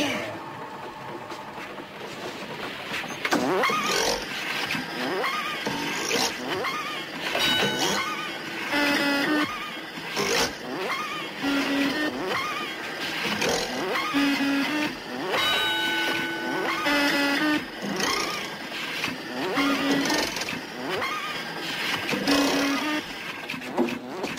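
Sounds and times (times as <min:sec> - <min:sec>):
candy-making factory machine clanking and whirring: 0:00.0 - 0:24.3.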